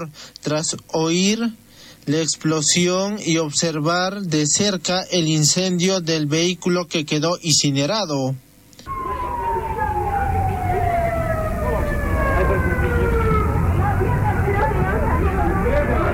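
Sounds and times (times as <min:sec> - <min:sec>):
speech: 0:00.0 - 0:09.3
fire engine siren: 0:08.8 - 0:16.1
street noise: 0:08.8 - 0:16.1
crowd chatter: 0:08.9 - 0:16.1.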